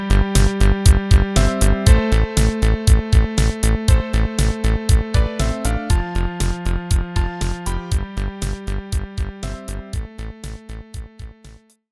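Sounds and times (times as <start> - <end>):
organ playing: 0.0 - 11.2.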